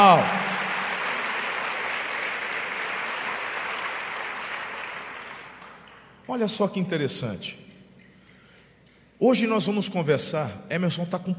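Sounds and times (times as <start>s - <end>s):
speech: 0.0s - 0.4s, 6.3s - 7.7s, 9.2s - 11.3s
audience applause: 0.0s - 6.1s.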